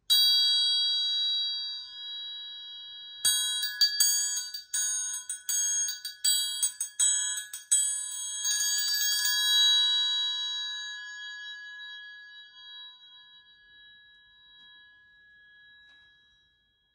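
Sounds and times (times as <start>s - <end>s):
triangle: 0.0s - 16.9s.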